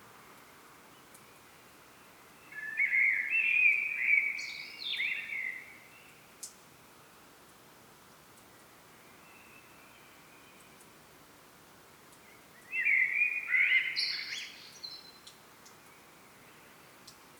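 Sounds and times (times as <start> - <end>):
hiss: 0.0 - 17.3
common blackbird singing fluting notes and twitters: 2.5 - 5.6, 12.7 - 15.2.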